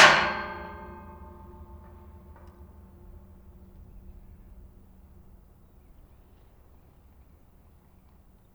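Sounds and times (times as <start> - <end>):
gate: 0.0 - 5.2.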